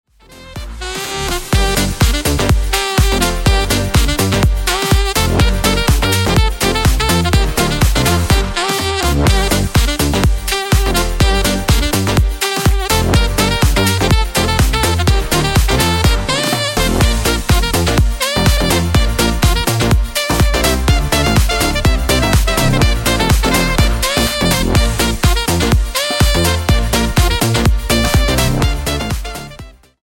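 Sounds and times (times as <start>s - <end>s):
synthetic saxophone: 0.1s - 30.0s.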